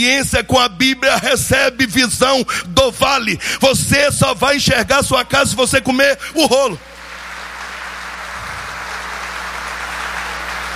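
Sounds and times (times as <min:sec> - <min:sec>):
speech: 0:00.0 - 0:06.9
audience applause: 0:06.9 - 0:10.7.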